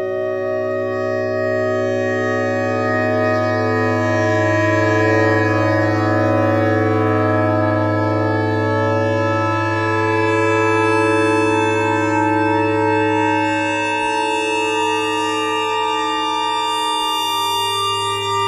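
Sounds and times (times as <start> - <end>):
clarinet notes: 0.2 - 18.4.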